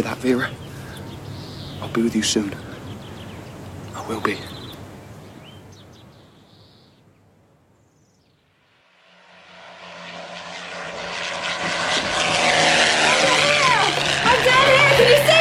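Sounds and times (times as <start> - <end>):
propeller airplane flying overhead: 0.0 - 5.2, 8.6 - 15.3
speech: 0.1 - 0.7, 1.8 - 2.7, 4.0 - 4.5.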